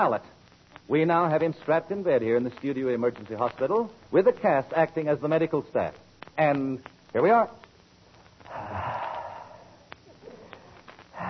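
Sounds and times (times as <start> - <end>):
speech: 0.0 - 7.6
heavy breathing: 8.5 - 11.2.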